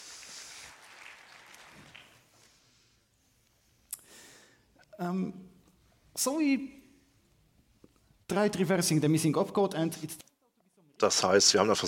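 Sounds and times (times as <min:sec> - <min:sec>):
audience applause in a hall: 0:00.0 - 0:02.4
speech: 0:05.0 - 0:05.5, 0:06.2 - 0:06.8, 0:08.3 - 0:10.3, 0:11.0 - 0:11.8.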